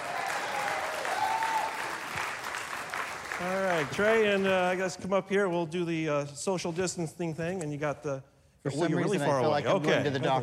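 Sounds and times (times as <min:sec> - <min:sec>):
audience round of applause: 0:00.0 - 0:04.5
speech: 0:03.4 - 0:10.4.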